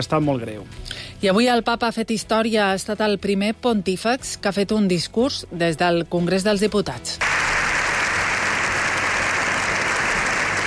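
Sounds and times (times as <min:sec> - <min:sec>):
speech: 0:00.0 - 0:07.4
ovation for Pope Leo XIV at the Spanish Congress of Deputies: 0:07.2 - 0:10.6.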